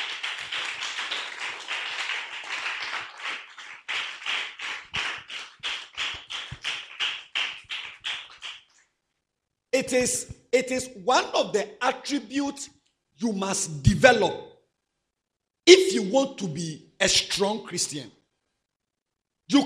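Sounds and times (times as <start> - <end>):
audience clapping: 0.0 - 8.8
speech: 9.8 - 14.4, 16.0 - 18.2, 19.5 - 19.6.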